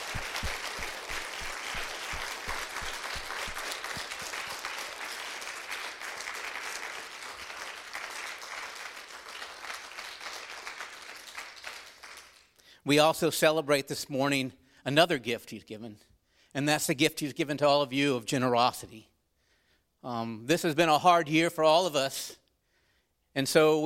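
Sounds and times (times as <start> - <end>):
audience applause: 0.0 - 12.5
speech: 12.9 - 19.1, 20.0 - 22.4, 23.4 - 23.8.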